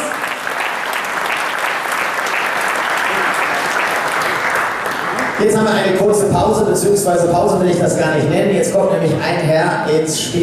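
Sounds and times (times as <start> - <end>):
audience applause: 0.0 - 5.9
speech: 5.4 - 10.4.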